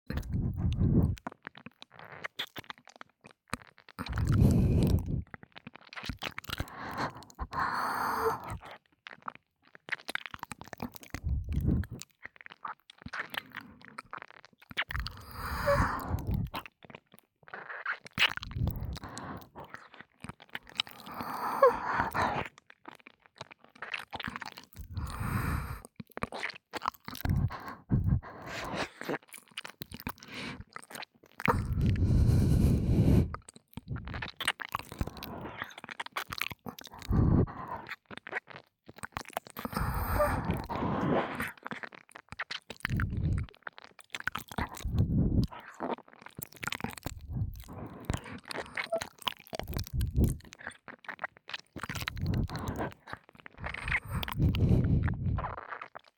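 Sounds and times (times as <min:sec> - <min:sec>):
ASMR ear licking sounds: 0:00.1 - 0:56.1
ASMR breathy sighs: 0:00.2 - 0:01.2, 0:04.0 - 0:05.2, 0:06.6 - 0:08.6, 0:11.2 - 0:12.0, 0:15.0 - 0:16.6, 0:18.6 - 0:19.8, 0:20.8 - 0:22.5, 0:24.9 - 0:25.9, 0:27.2 - 0:29.2, 0:30.2 - 0:30.7, 0:31.5 - 0:34.2, 0:35.0 - 0:35.8, 0:36.9 - 0:37.9, 0:39.6 - 0:41.6, 0:44.6 - 0:45.8, 0:47.2 - 0:49.0, 0:49.7 - 0:50.4, 0:52.0 - 0:55.6.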